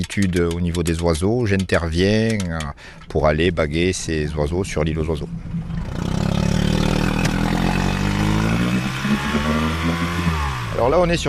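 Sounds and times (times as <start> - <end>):
speech: 0.0 - 5.9, 9.8 - 11.2
motorboat engine running on a lagoon: 4.9 - 11.2.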